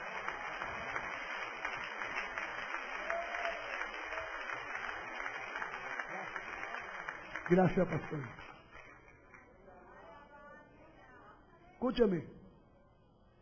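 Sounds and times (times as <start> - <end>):
audience applause in church: 0.0 - 9.4
speech: 7.5 - 8.5, 11.8 - 12.4.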